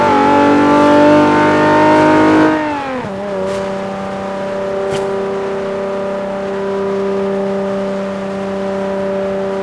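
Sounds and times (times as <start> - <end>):
vehicles cruising: 0.0 - 9.6.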